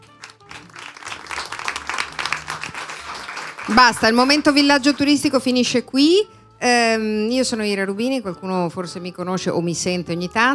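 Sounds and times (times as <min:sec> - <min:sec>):
audience applause: 0:00.0 - 0:05.2
speech: 0:03.7 - 0:10.5.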